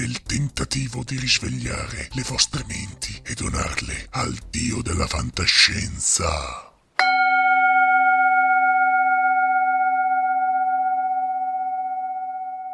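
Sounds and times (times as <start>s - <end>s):
speech: 0.0s - 6.7s
Tibetan singing bowl struck and ringing: 7.0s - 12.7s.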